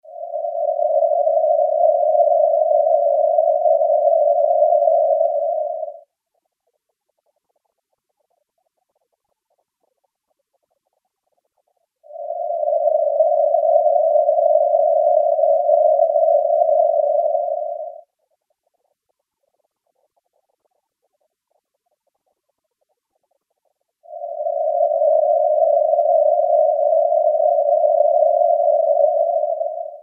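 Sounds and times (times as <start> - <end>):
630 Hz noise: 0.0 - 30.0.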